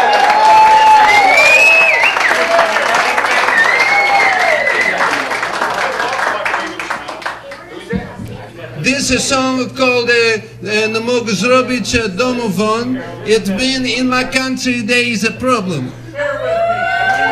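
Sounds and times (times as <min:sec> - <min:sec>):
audience cheering: 0:00.0 - 0:07.6, 0:16.2 - 0:17.2
audience applause: 0:00.0 - 0:07.9
speech: 0:09.1 - 0:16.0.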